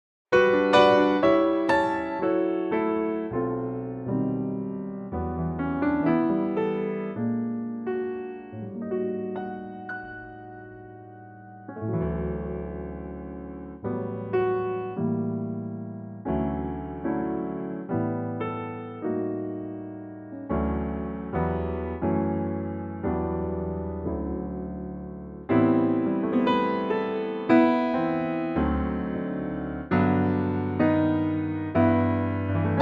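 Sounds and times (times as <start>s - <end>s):
piano in D: 0.3s - 32.8s.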